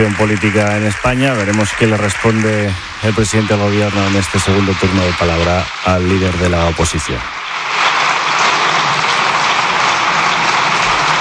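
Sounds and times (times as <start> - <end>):
speech: 0.0 - 7.8
parliament deputies applauding: 0.0 - 11.1.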